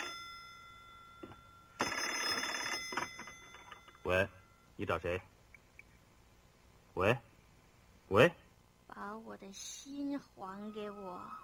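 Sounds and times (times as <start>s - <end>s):
telephone bell ringing: 0.0s - 4.7s
speech: 4.1s - 5.3s, 7.0s - 7.3s, 8.1s - 8.4s, 9.1s - 11.4s.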